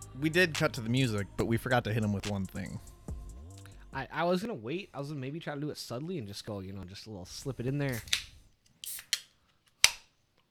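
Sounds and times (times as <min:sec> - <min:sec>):
speech: 0:00.2 - 0:03.0, 0:03.9 - 0:08.3
can of Diet Mountain Dew being opened: 0:07.9 - 0:10.0.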